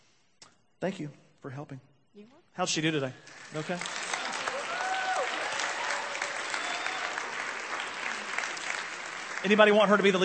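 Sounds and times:
speech: 0:00.8 - 0:04.0, 0:09.4 - 0:10.2
crowd applauding: 0:03.2 - 0:10.2.

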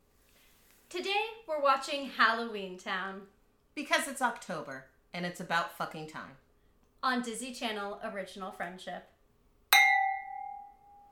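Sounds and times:
speech: 0:01.0 - 0:06.4, 0:07.0 - 0:09.1
drinking glasses ringing when clinked: 0:09.8 - 0:11.1.

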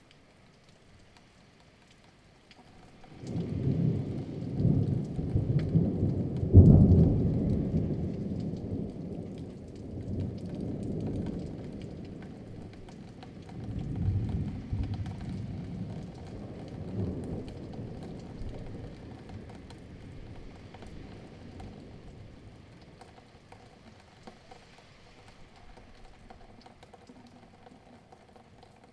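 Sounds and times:
thunderstorm in Kent: 0:03.1 - 0:24.1.

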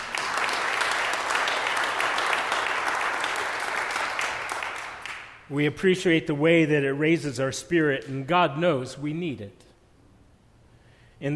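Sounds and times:
audience clapping: 0:00.0 - 0:05.5
speech: 0:05.5 - 0:09.7.

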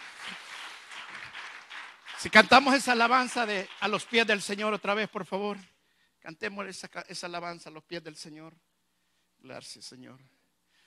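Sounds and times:
audience applause: 0:00.0 - 0:04.8
speech: 0:02.2 - 0:08.7, 0:09.4 - 0:10.4.

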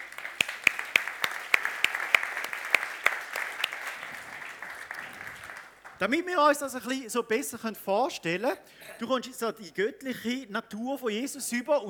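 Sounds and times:
light scattered applause from a small group: 0:00.0 - 0:07.0
speech: 0:06.0 - 0:11.8.

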